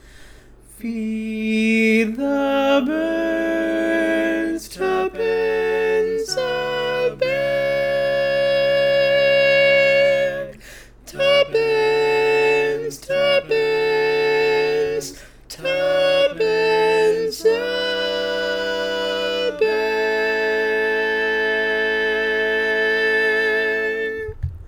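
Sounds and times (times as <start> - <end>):
tenor singing barbershop tags: 0.8 - 24.4.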